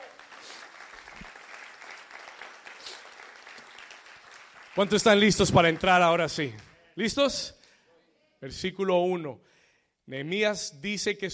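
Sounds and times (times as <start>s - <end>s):
audience applause: 0.0s - 6.8s
speech: 4.8s - 7.6s, 8.4s - 9.5s, 10.1s - 11.3s.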